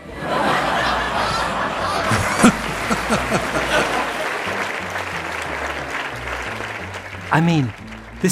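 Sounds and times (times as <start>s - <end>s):
laughter: 0.0s - 7.6s
audience cheering: 0.0s - 8.3s
speech: 7.3s - 8.3s.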